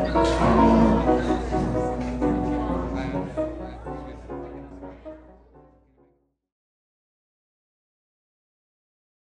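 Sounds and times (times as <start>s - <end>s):
annoying piano playing: 0.0s - 5.8s.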